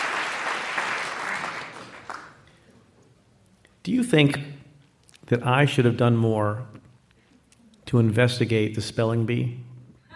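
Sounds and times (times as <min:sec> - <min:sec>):
crowd audience clapping: 0:00.0 - 0:02.7
speech: 0:03.9 - 0:04.5, 0:05.3 - 0:06.8, 0:07.9 - 0:09.7.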